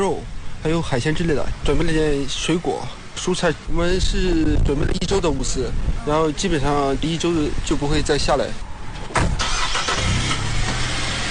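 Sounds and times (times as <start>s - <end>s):
speech: 0.0s - 8.7s
car loaded with supplies pulling away from an army camp: 9.2s - 11.2s.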